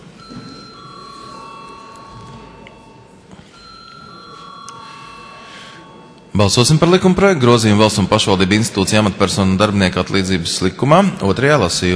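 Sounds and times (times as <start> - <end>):
parliament chamber bell ringing: 0.0 - 8.0
room murmur and shuffling: 0.0 - 11.9
speech: 6.4 - 11.9.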